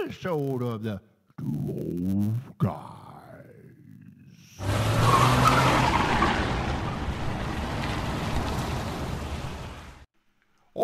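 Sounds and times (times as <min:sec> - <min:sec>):
speech: 0:00.0 - 0:02.9
car tires skidding and squealing while taking a corner fast: 0:04.6 - 0:10.0.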